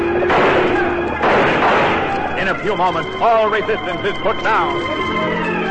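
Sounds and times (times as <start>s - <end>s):
gunfire from many weapons: 0.0s - 4.1s
speech: 2.6s - 5.6s.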